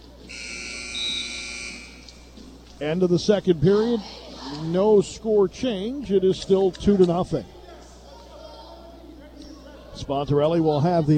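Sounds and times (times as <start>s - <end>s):
wrestling match buzzer ending a period: 0.3s - 2.3s
speech: 2.8s - 7.6s, 10.1s - 11.1s.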